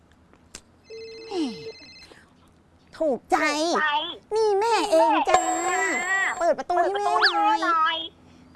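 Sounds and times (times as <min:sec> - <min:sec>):
phone electronic ringtone: 0:00.9 - 0:02.1
speech: 0:03.0 - 0:08.0.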